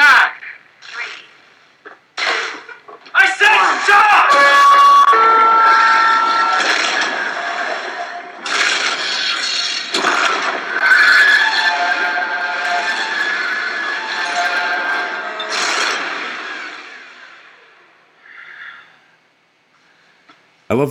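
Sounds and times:
blast doors coming down from ceiling: 0:02.2 - 0:18.0.

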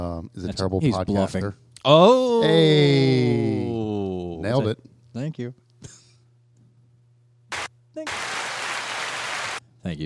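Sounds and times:
speech: 0:00.0 - 0:03.7, 0:04.4 - 0:06.0, 0:08.0 - 0:08.4, 0:09.8 - 0:10.0
crowd applause sound effect: 0:07.5 - 0:09.6
noise burst: 0:07.5 - 0:09.6.

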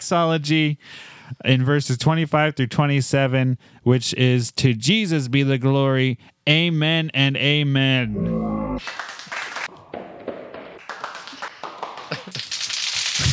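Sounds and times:
speech: 0:00.1 - 0:09.1
soundboard applause clapping effect: 0:08.8 - 0:13.2.

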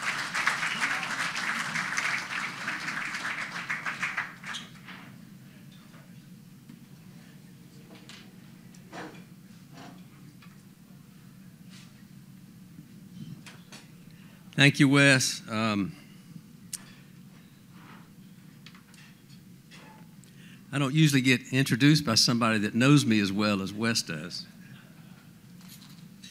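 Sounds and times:
audience applauding to welcome a speaker: 0:00.0 - 0:04.8
speech: 0:14.6 - 0:16.0, 0:20.8 - 0:24.6.

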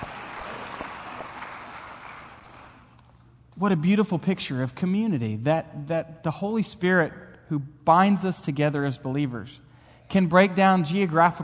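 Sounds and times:
audience clapping: 0:00.0 - 0:03.0
speech: 0:03.6 - 0:11.4.

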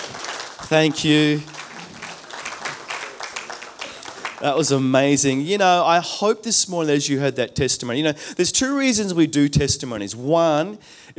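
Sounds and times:
audience clapping: 0:00.0 - 0:05.5
speech: 0:00.7 - 0:01.5, 0:04.4 - 0:11.1.

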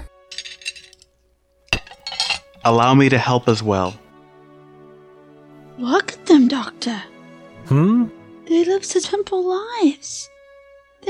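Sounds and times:
dishes clinking while being put away: 0:00.3 - 0:01.1, 0:01.7 - 0:02.8, 0:03.6 - 0:04.0
speech: 0:02.6 - 0:04.0, 0:06.8 - 0:07.1, 0:07.7 - 0:10.4.

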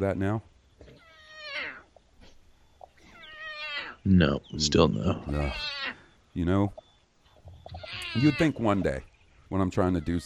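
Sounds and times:
speech: 0:00.0 - 0:00.5, 0:04.0 - 0:05.8, 0:06.4 - 0:06.8, 0:07.7 - 0:10.2
cat meowing: 0:01.0 - 0:01.9, 0:03.2 - 0:04.0, 0:05.2 - 0:06.0, 0:07.7 - 0:08.8, 0:09.8 - 0:10.2.

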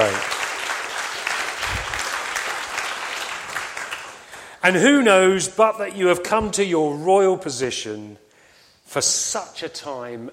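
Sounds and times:
applause: 0:00.0 - 0:04.6
speech: 0:04.6 - 0:08.2, 0:08.9 - 0:10.3.

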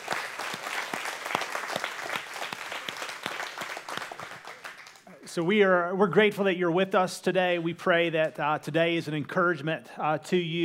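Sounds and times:
church congregation applauding: 0:00.0 - 0:05.3
speech: 0:05.3 - 0:10.6.

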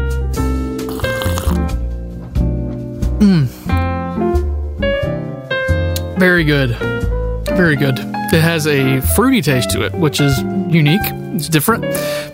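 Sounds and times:
tonal music: 0:00.0 - 0:12.3
slurp of hot coffee being sipped: 0:00.8 - 0:01.8
speech: 0:03.2 - 0:03.6, 0:06.2 - 0:06.9, 0:07.6 - 0:12.2.

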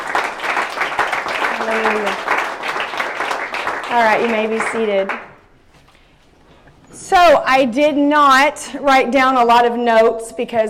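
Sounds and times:
audience clapping hands: 0:00.0 - 0:05.4
voice over clapping: 0:01.2 - 0:02.6, 0:03.7 - 0:05.3
speech: 0:01.6 - 0:02.3, 0:03.9 - 0:05.3, 0:07.1 - 0:10.6.

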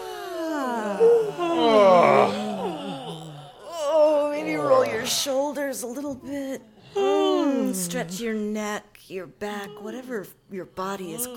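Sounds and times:
person yawning during a warm-up stretch: 0:00.0 - 0:05.2, 0:06.9 - 0:08.2
speech: 0:08.0 - 0:11.3.

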